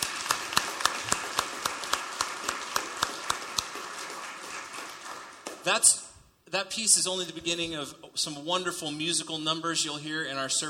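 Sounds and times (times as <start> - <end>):
audience applause: 0.0 - 5.7
speech: 5.7 - 10.6.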